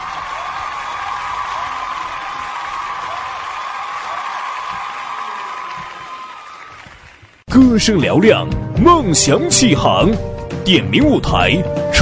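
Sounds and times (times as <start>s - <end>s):
applause: 0.0s - 7.5s
speech: 7.6s - 12.0s.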